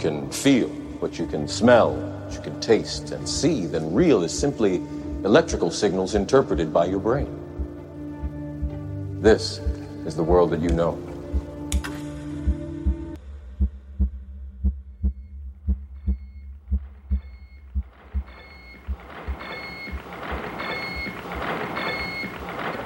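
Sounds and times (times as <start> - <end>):
speech: 0.0 - 7.4, 9.2 - 11.0
SAGE computer rhythmic heartbeat-like pulsing: 7.6 - 8.8, 12.4 - 22.8
dense mechanical whir: 17.8 - 22.8.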